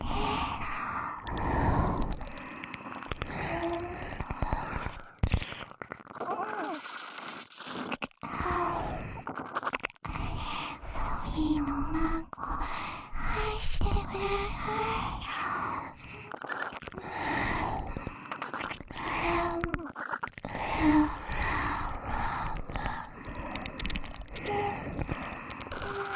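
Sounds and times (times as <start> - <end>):
synchronized whispering: 0.0 - 7.1, 8.2 - 26.1
ear licking sounds: 1.2 - 8.3, 9.2 - 10.0, 16.3 - 17.0, 18.0 - 26.1.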